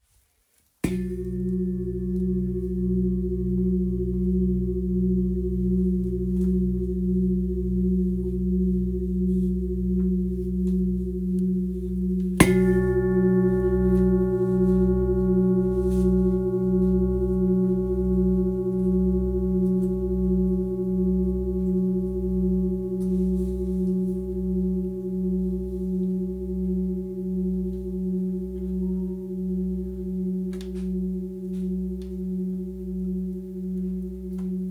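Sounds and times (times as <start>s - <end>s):
large Tibetan singing bowl in B: 0.8s - 34.6s.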